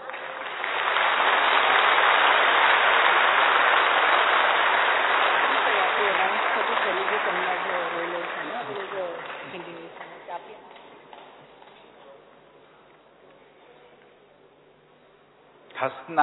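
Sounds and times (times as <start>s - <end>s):
audience clapping: 0.0s - 12.0s.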